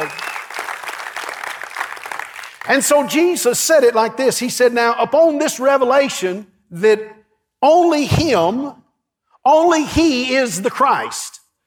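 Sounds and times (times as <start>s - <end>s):
audience clapping hands: 0.0s - 3.2s
speech: 2.6s - 8.8s, 9.4s - 11.4s.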